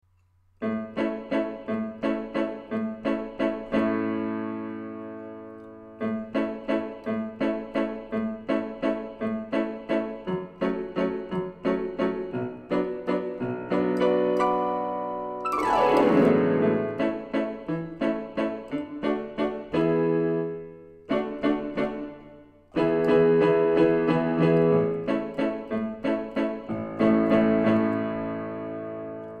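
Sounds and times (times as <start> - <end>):
solo piano: 0.6 - 29.3.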